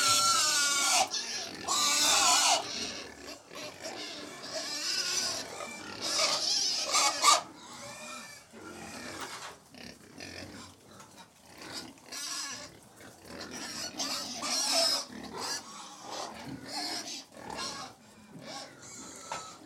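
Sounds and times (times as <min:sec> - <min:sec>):
hundred domestic pigs feeding, snuffling, chomping and grunting: 0:00.0 - 0:19.6.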